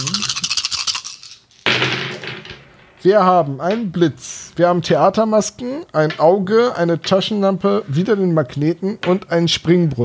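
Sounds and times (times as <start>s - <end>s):
dice being rolled: 0.0s - 2.9s
speech: 3.0s - 10.0s.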